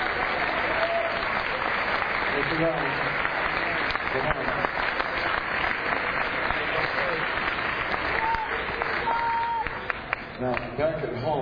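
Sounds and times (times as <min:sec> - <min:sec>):
audience applauding: 0:00.0 - 0:10.8
speech: 0:02.4 - 0:03.2, 0:04.1 - 0:04.4.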